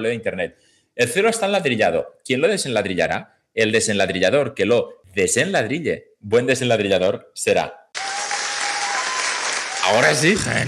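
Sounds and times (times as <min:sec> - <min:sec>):
speech: 0:00.0 - 0:07.8, 0:09.9 - 0:10.6
applause: 0:08.0 - 0:10.6.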